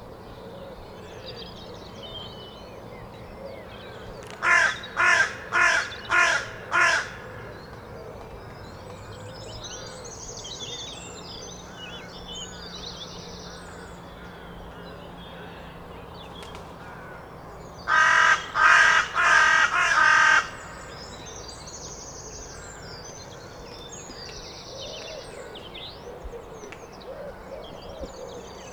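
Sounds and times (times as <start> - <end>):
carrion crow cawing: 4.4 - 7.5, 17.9 - 21.0.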